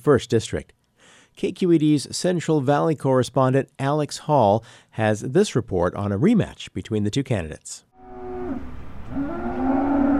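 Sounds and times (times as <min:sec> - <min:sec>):
speech: 0:00.0 - 0:00.8, 0:01.4 - 0:07.9
cattle mooing at a stockyard before a cattle auction: 0:08.0 - 0:10.1.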